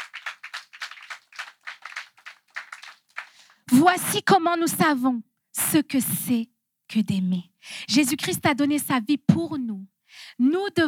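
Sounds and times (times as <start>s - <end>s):
church congregation clapping in unison: 0.0s - 3.6s
speech: 3.7s - 10.8s.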